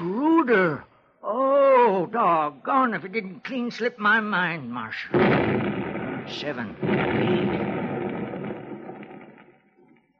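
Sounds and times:
speech: 0.5 - 7.8
blasting charges exploding in a mine shaft bringing down rock: 5.2 - 9.2.

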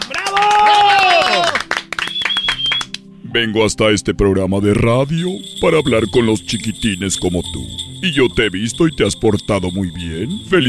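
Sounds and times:
cheering voices and whoops: 0.0 - 1.7
clapping for a child on a Christmas show: 0.0 - 3.0
speech: 3.4 - 10.6.

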